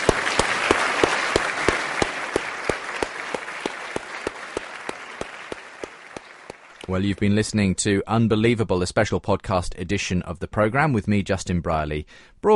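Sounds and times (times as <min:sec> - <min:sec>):
crowd applause: 0:00.0 - 0:07.2
speech: 0:06.9 - 0:12.5.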